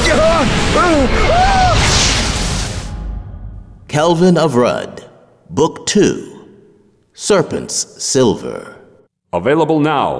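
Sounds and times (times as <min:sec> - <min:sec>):
roaring fireball blast in an audio drama: 0:00.1 - 0:03.9
speech: 0:04.0 - 0:06.3, 0:07.2 - 0:10.1.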